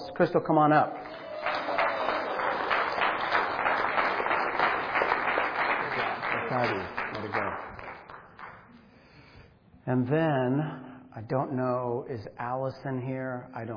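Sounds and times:
speech: 0.2s - 1.1s, 6.5s - 7.7s, 9.8s - 13.7s
audience applause: 1.0s - 8.6s.

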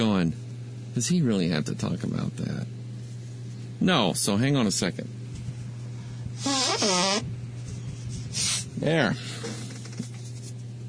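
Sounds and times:
speech: 0.0s - 0.4s, 1.0s - 2.8s, 3.8s - 5.2s, 6.4s - 7.3s, 8.8s - 9.6s
person blowing nose: 6.4s - 7.2s, 8.2s - 8.7s.

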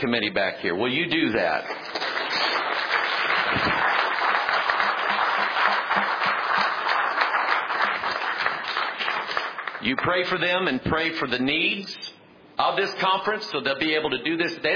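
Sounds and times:
speech: 0.0s - 2.2s, 9.8s - 14.7s
audience applause: 1.7s - 10.0s.

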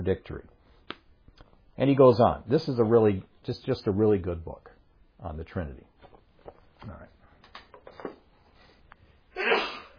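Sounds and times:
speech: 0.0s - 0.6s, 1.8s - 7.2s
person sneezing: 9.3s - 9.9s.

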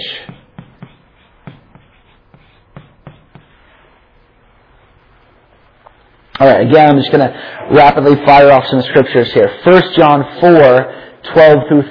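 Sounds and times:
writing tool tapping and scratching while hand-drawing a diagram: 0.1s - 3.7s
speech: 6.4s - 11.8s.

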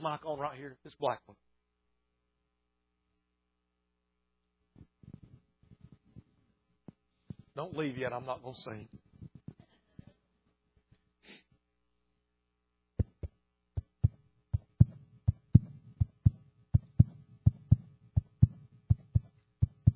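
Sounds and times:
speech: 0.0s - 1.5s, 7.6s - 9.0s
fetal heartbeat on an ultrasound monitor: 13.0s - 19.9s.

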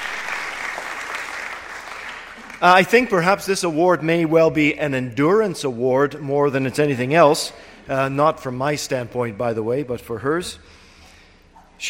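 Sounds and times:
crowd applause at an award presentation: 0.0s - 3.2s
speech: 2.6s - 10.8s.

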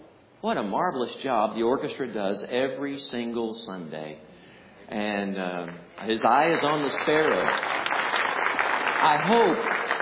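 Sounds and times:
speech: 0.4s - 4.3s, 4.9s - 7.8s, 9.0s - 9.7s
church congregation applause after orchestra music: 6.0s - 10.0s.

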